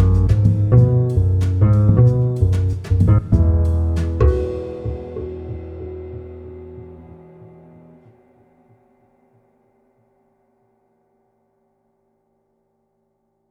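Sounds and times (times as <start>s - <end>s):
upright piano with steel strings: 0.0s - 8.6s.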